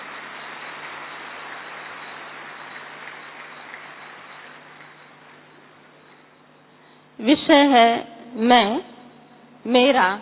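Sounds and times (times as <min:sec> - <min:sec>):
audience applause welcoming a speaker: 0:00.0 - 0:05.5
speech: 0:07.2 - 0:08.9, 0:09.6 - 0:10.1.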